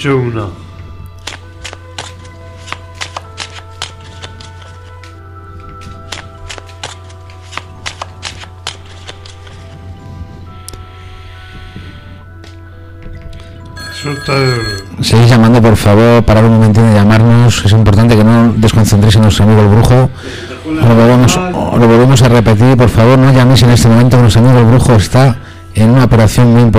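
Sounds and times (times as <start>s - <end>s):
speech: 0.0s - 0.6s, 14.1s - 26.7s
fortune teller shuffling a deck of cards: 1.2s - 9.8s.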